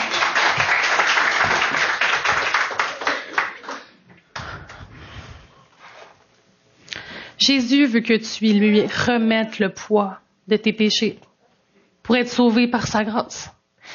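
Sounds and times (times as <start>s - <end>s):
audience applause: 0.0s - 4.0s
speech: 7.4s - 11.3s, 12.1s - 13.6s.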